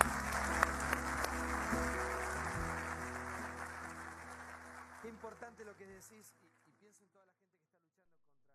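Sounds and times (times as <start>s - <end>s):
audience applause: 0.0s - 6.8s
speech: 5.8s - 6.5s.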